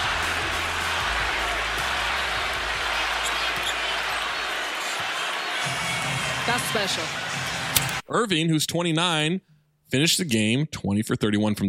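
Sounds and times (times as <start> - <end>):
arena crowd cheering at basketball game in Orlando: 0.0 - 8.0
speech: 6.6 - 7.3, 8.1 - 11.6.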